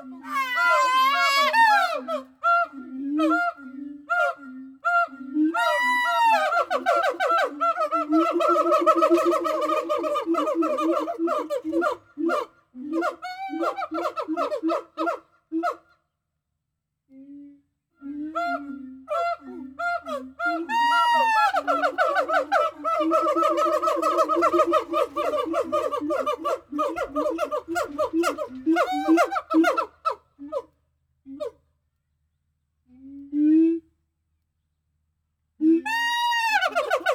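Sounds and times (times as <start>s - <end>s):
gibbon calls: 0.0s - 15.8s, 18.3s - 30.7s, 35.8s - 37.1s.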